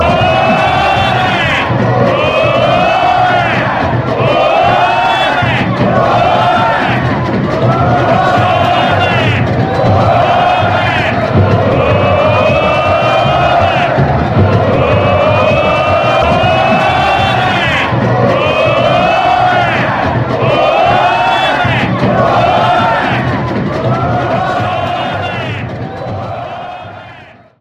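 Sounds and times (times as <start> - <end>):
ole chant: 0.0 - 27.5.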